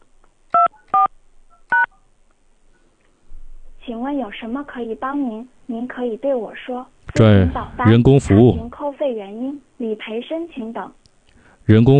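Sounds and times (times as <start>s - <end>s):
phone keypad dual-tone beeps entering a number: 0.5s - 2.0s
speech: 4.1s - 11.0s, 11.7s - 11.9s.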